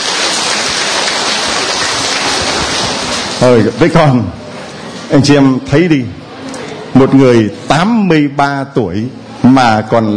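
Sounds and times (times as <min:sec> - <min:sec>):
audience clapping at a church community event: 0:00.0 - 0:03.6
speech: 0:03.4 - 0:04.4, 0:05.1 - 0:06.2, 0:07.0 - 0:10.1.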